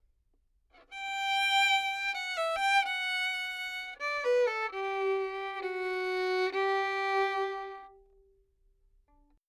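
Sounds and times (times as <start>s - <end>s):
dry violin melody in G major: 0.9s - 8.2s.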